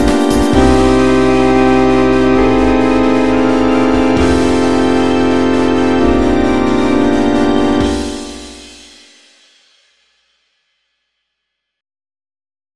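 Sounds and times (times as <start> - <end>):
techno music: 0.0 - 9.1.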